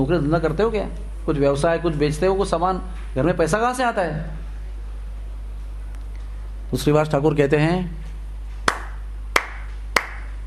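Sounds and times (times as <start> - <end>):
speech: 0.0 - 4.4, 6.7 - 8.0
steady low hum: 0.0 - 10.4
hand claps: 8.6 - 10.4.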